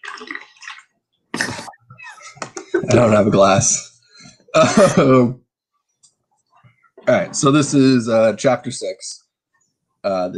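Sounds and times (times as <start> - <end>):
water sloshing and gurgling from a large jug: 0.0 - 1.7
speech: 2.9 - 3.9, 4.5 - 5.4, 7.1 - 9.2, 10.0 - 10.3.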